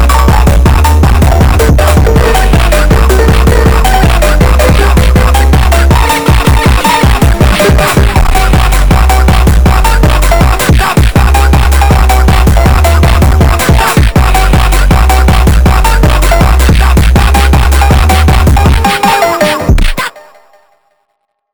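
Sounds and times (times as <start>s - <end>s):
phonk music: 0.0s - 20.0s.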